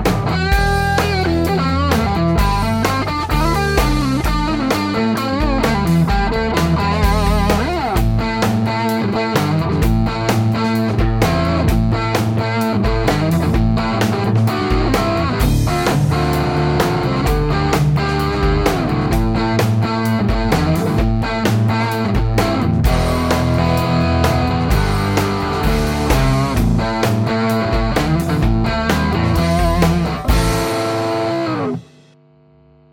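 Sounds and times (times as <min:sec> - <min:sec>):
high-gain electric guitar on neck pickup: 0:00.0 - 0:32.1.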